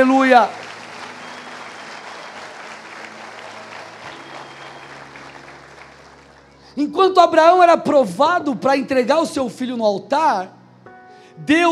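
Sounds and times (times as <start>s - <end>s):
speech: 0.0s - 0.6s, 6.8s - 10.6s, 11.4s - 11.7s
audience applause: 0.0s - 6.6s.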